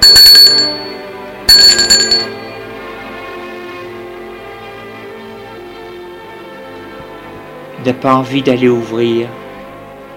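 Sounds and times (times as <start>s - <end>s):
doorbell ringing: 0.0s - 2.9s
speech: 0.5s - 1.0s, 7.8s - 9.4s.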